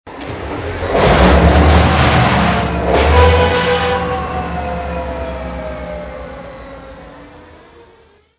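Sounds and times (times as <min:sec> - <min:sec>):
train: 0:00.1 - 0:08.3.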